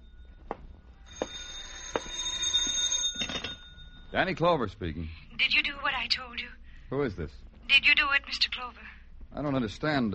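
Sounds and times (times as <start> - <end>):
telephone ringing: 0.0 - 4.2
speech: 4.1 - 10.1.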